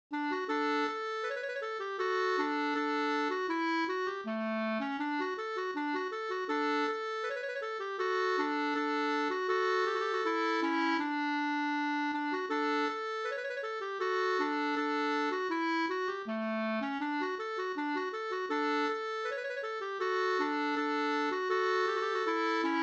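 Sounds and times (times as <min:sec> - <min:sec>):
folk walking tune: 0:00.2 - 0:22.8.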